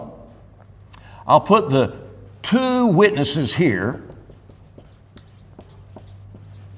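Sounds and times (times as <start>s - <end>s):
speech: 1.3s - 4.1s
light scratches and taps drawing a chart on a board: 4.0s - 6.7s.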